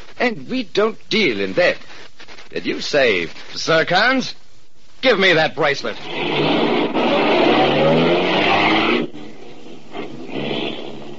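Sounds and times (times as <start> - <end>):
speech: 0.2 - 4.4, 5.0 - 7.0
car engine revving and accelerating: 6.0 - 11.1.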